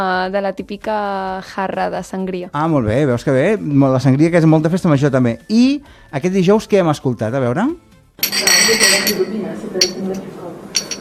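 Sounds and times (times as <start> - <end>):
speech: 0.0 - 10.5
glasses clinking together in a toast between friends: 8.2 - 10.9.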